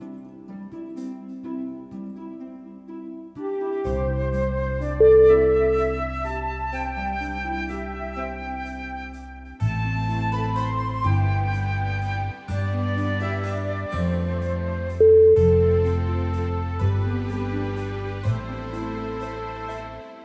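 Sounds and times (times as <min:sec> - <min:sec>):
Celtic romantic music: 0:00.0 - 0:20.2.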